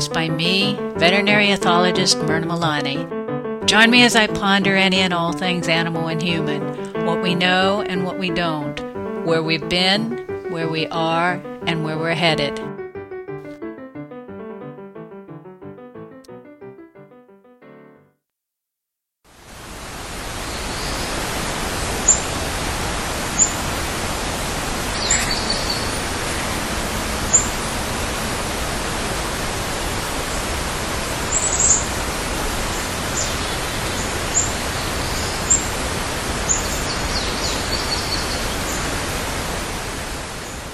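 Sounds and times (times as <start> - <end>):
soft tonal music: 0.0 - 12.8
speech: 0.1 - 12.8
outdoor morning hiss-like ambience shortly after sunrise: 19.3 - 40.7
birds chirping: 23.3 - 23.6, 24.9 - 26.6, 27.3 - 27.6, 31.3 - 32.0, 32.6 - 35.8, 36.4 - 39.0.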